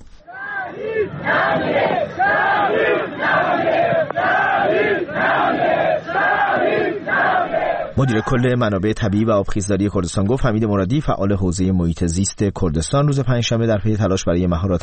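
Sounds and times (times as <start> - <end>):
large crowd chanting a slogan in unison at a funeral: 0.2 - 8.4
speech: 8.0 - 14.8.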